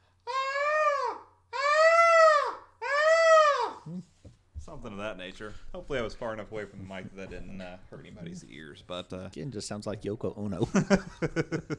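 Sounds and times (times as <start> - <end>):
voice imitating fox calls: 0.2 - 4.2
speech: 4.7 - 11.7
laughter: 10.6 - 11.7.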